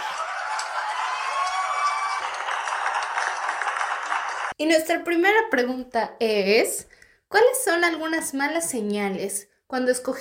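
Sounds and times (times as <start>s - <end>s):
applause: 0.0s - 4.6s
speech: 4.6s - 10.2s.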